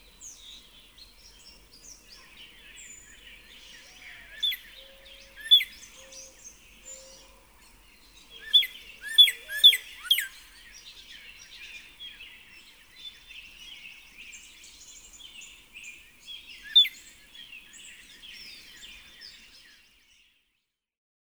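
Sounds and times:
Northern cardinal song of rapidly repeated down-slurred whistled notes: 3.5 - 7.2, 8.4 - 10.5, 16.5 - 19.6.

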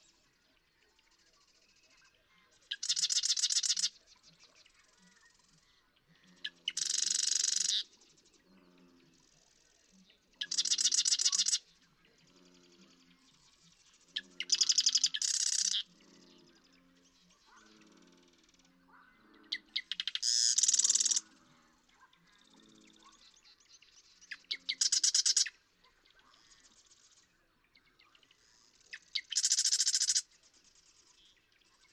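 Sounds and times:
Marsh Wren singing: 2.7 - 3.9, 6.7 - 7.9, 10.4 - 11.6, 13.8 - 16.6, 19.5 - 21.2, 22.4 - 25.6, 28.8 - 30.3.

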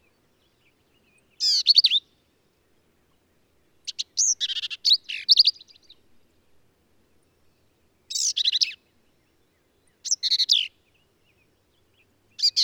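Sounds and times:
Black-capped Vireo singing: 0.0 - 2.3, 3.9 - 6.0, 7.4 - 12.6.

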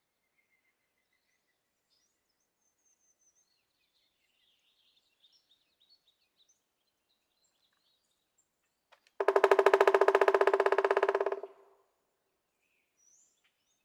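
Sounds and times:
Pileated woodpecker rapid series of sharp knocks: 9.2 - 11.6.

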